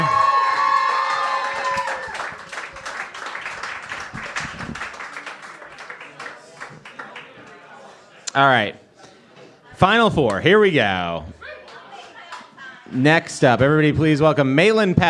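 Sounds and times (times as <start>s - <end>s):
audience clapping and cheering at a stand-up comedy competition: 0.0s - 7.4s
speech: 8.4s - 8.8s, 9.8s - 11.4s, 12.9s - 15.0s.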